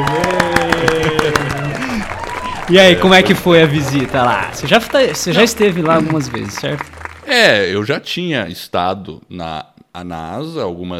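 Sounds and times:
applause: 0.0 - 7.7
speech: 2.7 - 10.9
laughter: 2.8 - 6.8.

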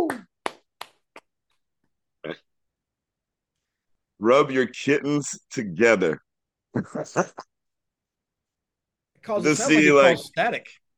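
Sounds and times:
scattered sharp hand claps from a small audience: 0.0 - 1.3
speech: 4.2 - 6.2, 6.8 - 7.5, 9.2 - 10.9
laughter: 6.8 - 7.4, 9.4 - 10.2.

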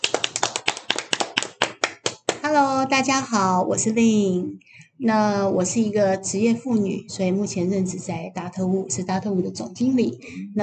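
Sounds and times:
applause welcoming a guest: 0.0 - 2.4
speech: 2.4 - 10.6.

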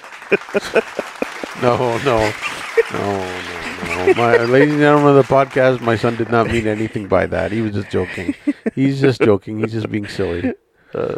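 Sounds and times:
hand claps: 0.0 - 7.6
laughter: 0.0 - 10.6
speech: 0.3 - 11.1.

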